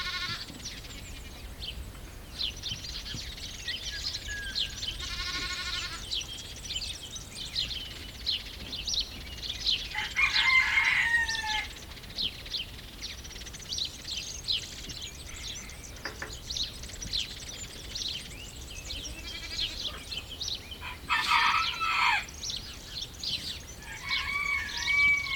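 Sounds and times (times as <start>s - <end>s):
goat camp countryside ambience: 0.0s - 25.3s.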